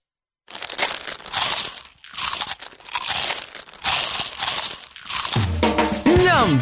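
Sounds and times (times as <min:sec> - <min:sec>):
bites of a small crunchy Vanini snack: 0:00.5 - 0:06.0.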